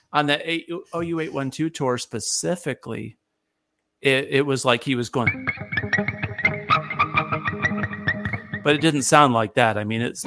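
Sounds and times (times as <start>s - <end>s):
speech: 0.1s - 3.2s, 4.0s - 6.2s, 8.6s - 10.2s
effects-laden electric guitar squeaking bird-like chirps: 5.2s - 9.0s.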